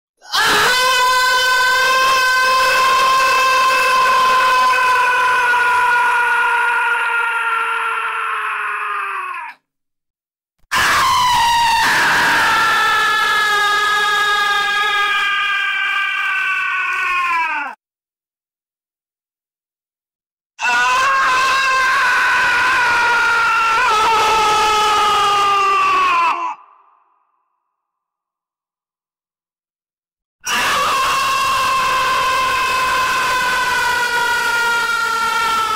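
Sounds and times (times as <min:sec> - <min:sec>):
epic scream: 0:00.2 - 0:09.6, 0:10.7 - 0:17.8, 0:20.6 - 0:27.0, 0:30.4 - 0:35.7.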